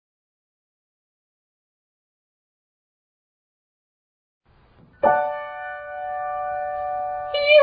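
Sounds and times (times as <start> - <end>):
descending triad arpeggio: 5.0 - 7.5.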